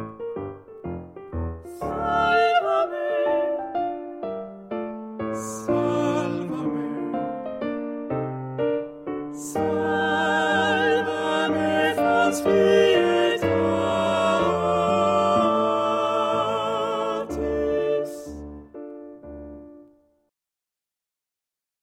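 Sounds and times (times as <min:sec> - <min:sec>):
choral piece: 0:01.6 - 0:08.4, 0:09.2 - 0:19.6.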